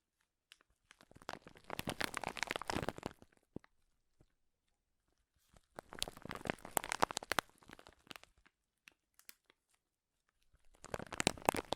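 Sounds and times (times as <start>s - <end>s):
crinkling: 0.1s - 11.7s.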